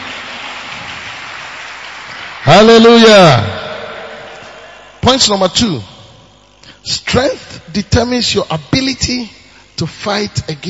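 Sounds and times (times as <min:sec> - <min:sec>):
crowd clapping hands: 0:00.0 - 0:05.3
speech: 0:02.4 - 0:03.6, 0:05.0 - 0:05.9, 0:06.8 - 0:10.6.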